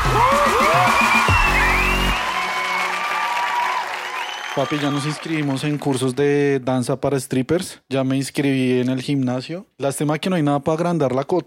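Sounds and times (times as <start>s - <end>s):
audience applause: 0.0s - 6.2s
speech: 4.6s - 11.4s.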